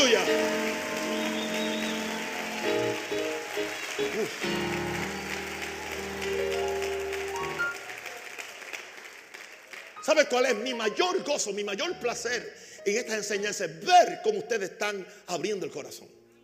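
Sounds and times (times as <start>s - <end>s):
audience applause: 0.0s - 10.0s
speech: 10.1s - 16.2s.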